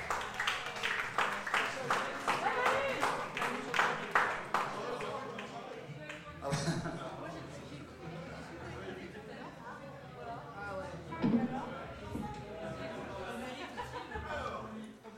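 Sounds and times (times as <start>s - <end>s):
audience clapping: 0.0s - 6.3s
murmur of voices: 0.0s - 15.1s
laughter: 6.4s - 10.2s, 12.6s - 14.9s.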